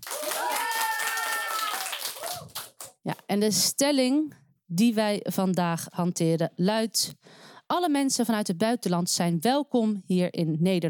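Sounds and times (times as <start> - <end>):
school audience applause for student debaters: 0.0 - 2.8
speech: 3.3 - 10.8.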